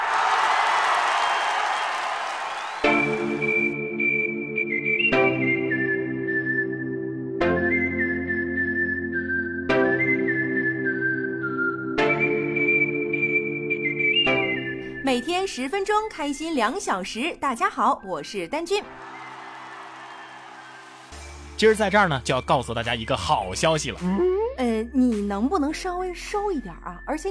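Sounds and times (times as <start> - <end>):
audience applause and cheering: 0.0 - 3.8, 18.8 - 21.8
bright jingle with a high whistling melody: 2.5 - 7.0, 7.6 - 15.4, 18.1 - 23.8
speech: 15.4 - 19.2, 21.6 - 27.3.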